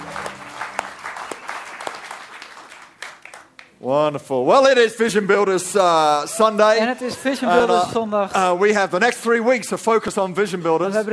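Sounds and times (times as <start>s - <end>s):
congregation clapping for the band at a Sunday church service: 0.0s - 3.8s
speech: 3.8s - 11.1s.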